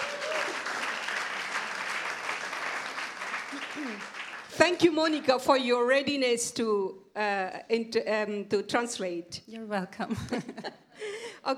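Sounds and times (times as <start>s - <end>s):
audience clapping: 0.0s - 5.3s
speech: 3.8s - 11.5s.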